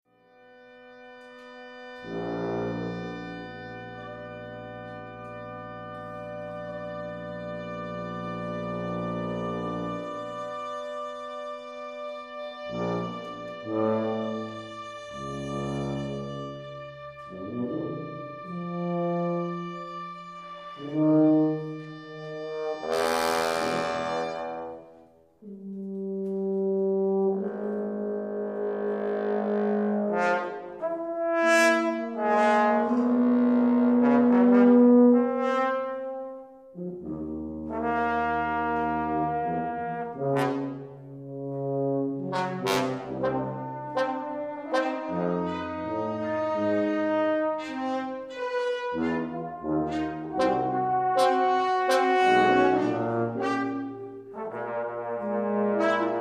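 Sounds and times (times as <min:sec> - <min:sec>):
fugue: 0:00.8 - 0:56.1.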